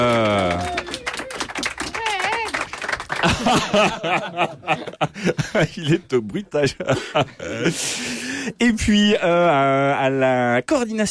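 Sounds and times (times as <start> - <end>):
audience applause: 0.0 - 4.7
laughter: 3.1 - 8.0
speech: 3.2 - 11.0.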